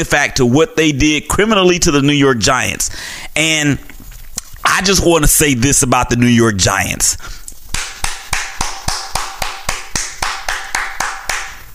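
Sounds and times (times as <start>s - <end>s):
speech: 0.0s - 3.9s, 4.7s - 7.4s
single person clapping hands: 7.7s - 11.7s.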